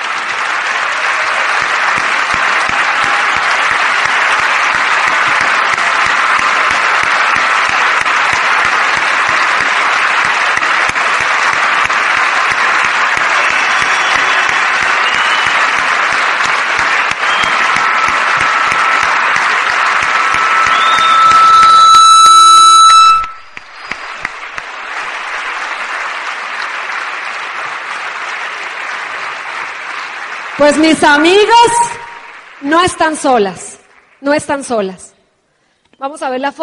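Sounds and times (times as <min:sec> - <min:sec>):
audience applause at an event honoring women raising families alone: 0:00.0 - 0:34.6
brief horn-like tonal blast: 0:20.6 - 0:23.6
speech: 0:30.6 - 0:31.9, 0:32.6 - 0:35.0, 0:36.0 - 0:36.6.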